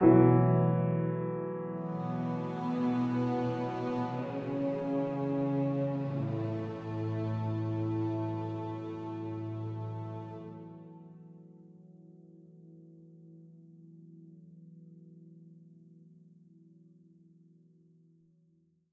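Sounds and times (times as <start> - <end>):
piano: 0.0 - 18.6.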